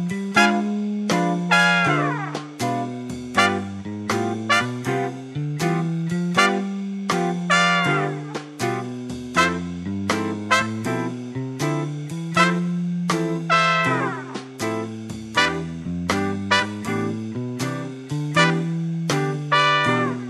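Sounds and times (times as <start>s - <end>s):
bebop major scale exercise: 0.0s - 20.2s.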